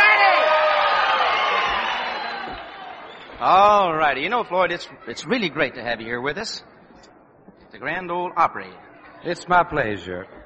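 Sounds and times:
audience applause and cheering at the Grand Ole Opry country music show: 0.0s - 4.7s
speech: 3.4s - 7.1s, 7.8s - 10.4s.

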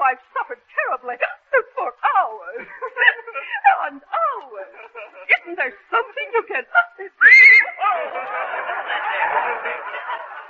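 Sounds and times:
speech: 0.1s - 1.4s
laughter: 2.4s - 6.6s, 7.2s - 10.4s
horse whinnying: 7.2s - 7.8s.

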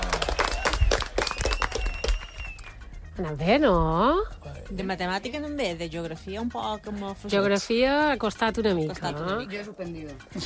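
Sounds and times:
group applauding: 0.0s - 2.8s
speech: 3.2s - 10.4s.

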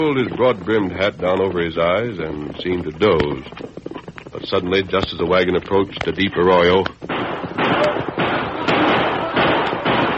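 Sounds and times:
speech: 0.0s - 3.8s, 4.4s - 7.8s
gunshots fired into the air by armed horsemen: 6.5s - 10.1s.

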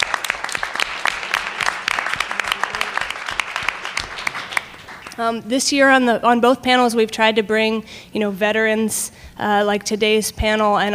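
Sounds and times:
audience applauding: 0.0s - 5.2s
speech: 5.2s - 10.9s.

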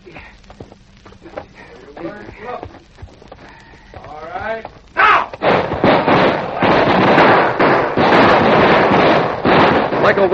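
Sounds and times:
gunfire volleys between outlaws and a posse in a radio drama: 5.4s - 10.3s
speech: 10.1s - 10.3s.

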